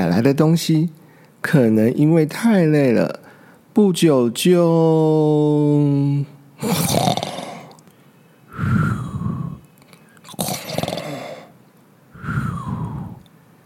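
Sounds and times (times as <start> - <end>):
speech: 0.0 - 3.2, 3.8 - 7.3
person performing snoring: 6.6 - 7.8, 8.5 - 9.7, 10.3 - 11.6, 12.2 - 13.3.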